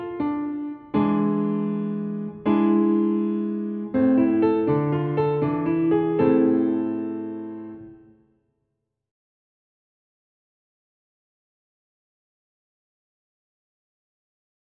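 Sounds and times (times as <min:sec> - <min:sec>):
primary triads with inversion in A minor: 0:00.0 - 0:08.0.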